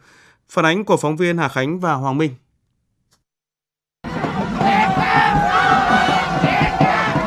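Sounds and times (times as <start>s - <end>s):
speech: 0.5s - 2.4s
football fans cheering and shouting at Nguyen Hue walking street: 4.0s - 7.2s.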